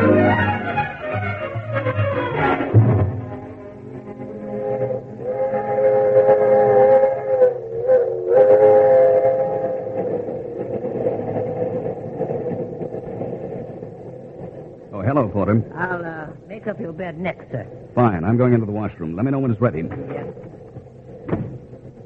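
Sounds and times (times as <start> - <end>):
loud sustained train whistle chord: 0.0 - 10.8
train rumbling: 0.0 - 22.0
speech: 18.3 - 21.0.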